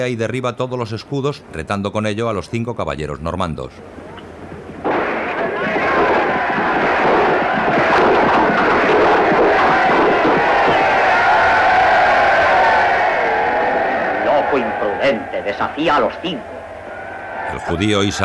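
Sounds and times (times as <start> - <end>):
speech: 0.0 - 4.1, 15.1 - 16.6, 17.5 - 18.2
Saxon crowd at a medieval tournament roaring and cheering: 4.8 - 18.2.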